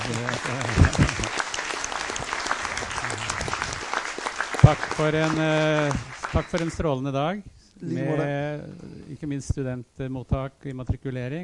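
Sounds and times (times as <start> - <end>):
audience applause: 0.0 - 6.9
speech: 0.2 - 1.4, 4.7 - 11.4.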